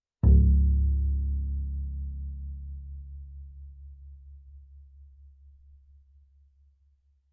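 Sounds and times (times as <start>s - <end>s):
double bass pizzicato fortissimo on the C string: 0.2s - 5.9s.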